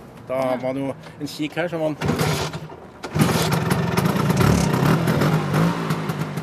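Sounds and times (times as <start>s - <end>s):
speech: 0.3s - 2.6s
1962 Vespa scooter kick-started and revving: 2.0s - 6.4s.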